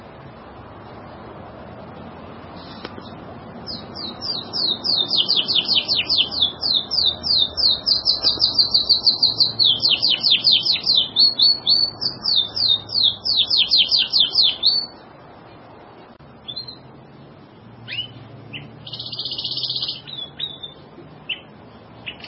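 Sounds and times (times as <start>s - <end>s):
bird song of high rapid chattering trills and twittering: 3.7s - 15.0s, 17.9s - 22.2s.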